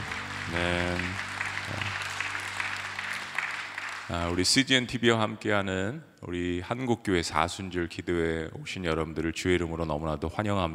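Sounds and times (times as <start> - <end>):
audience applause: 0.0 - 4.6
speech: 0.5 - 1.8, 4.1 - 10.7.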